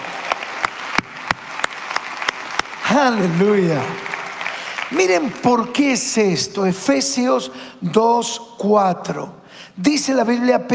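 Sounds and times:
audience applause: 0.0 - 5.9
speech: 2.9 - 4.1, 4.9 - 10.7.

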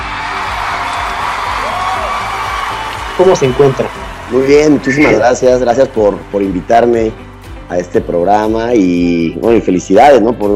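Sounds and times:
audience applause: 0.0 - 7.2
speech: 3.2 - 10.5.

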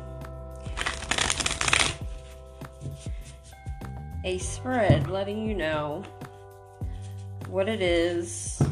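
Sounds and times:
playing cards shuffled for a card reading spread: 0.7 - 2.3
speech: 4.2 - 6.2, 7.5 - 8.6.

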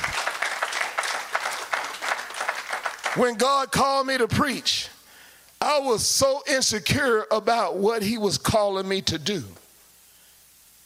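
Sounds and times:
audience clapping: 0.0 - 4.0
speech: 3.2 - 5.0, 5.6 - 9.6.

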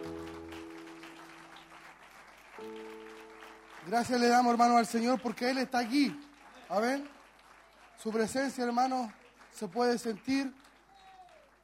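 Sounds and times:
organ or keyboard chords: 0.0 - 1.8, 2.6 - 5.0
audience applause: 0.0 - 11.6
speech: 3.9 - 7.2, 8.0 - 10.7.

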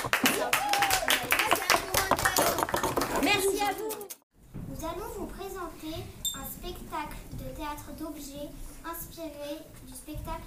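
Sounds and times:
audience clapping: 0.0 - 4.2
speech: 7.6 - 10.4.

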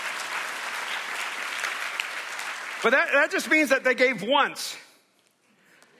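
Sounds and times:
audience applauding and cheering: 0.0 - 3.8
speech: 2.8 - 4.8.

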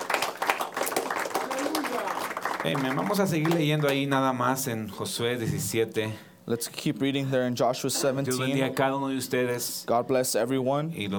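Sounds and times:
audience clapping: 0.0 - 4.5
speech: 2.6 - 11.1.

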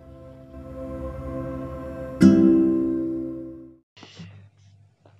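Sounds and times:
original song playing: 0.0 - 3.8.

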